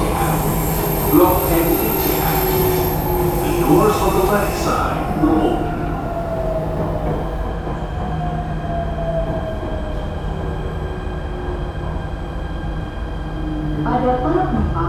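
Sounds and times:
metro train running: 0:00.0 - 0:14.8
speech: 0:01.1 - 0:02.7, 0:03.7 - 0:05.8.

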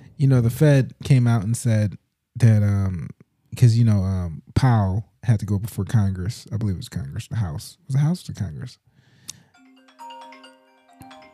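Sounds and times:
speech: 0:00.2 - 0:08.9
phone ringtone: 0:09.4 - 0:11.3.

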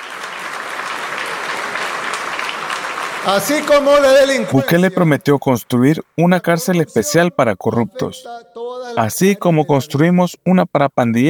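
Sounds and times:
room full of hands clapping in a legislative chamber: 0:00.0 - 0:04.8
speech: 0:03.2 - 0:11.2.

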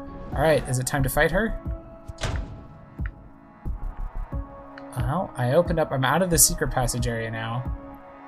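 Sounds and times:
speech: 0:00.3 - 0:02.3, 0:05.1 - 0:07.8
lighter deep thunks: 0:01.6 - 0:04.6
video game door slamming shut with a heavy booming thud: 0:02.0 - 0:03.5.

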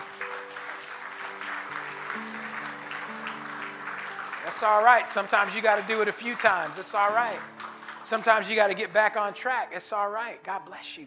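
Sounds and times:
audience applause: 0:00.0 - 0:08.8
speech: 0:04.5 - 0:11.0.

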